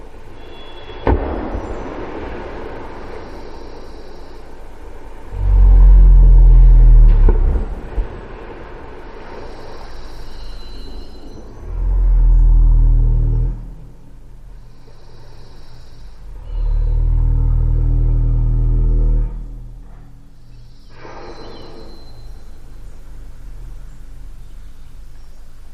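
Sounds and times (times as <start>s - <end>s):
humpback whale vocalizations in Alaska: 5.3s - 8.0s, 9.4s - 25.2s.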